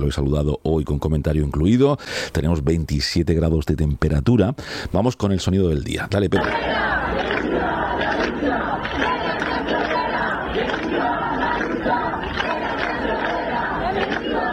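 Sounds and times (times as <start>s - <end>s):
speech: 0.0s - 7.3s
crowd of around 600 people marching in Murcia against evictions and housing prices: 6.4s - 14.5s.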